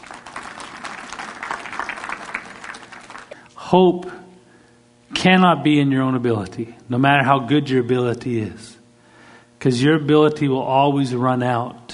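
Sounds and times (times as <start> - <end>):
audience applause: 0.0 - 3.4
speech: 3.7 - 4.2, 5.2 - 8.8, 9.6 - 11.8.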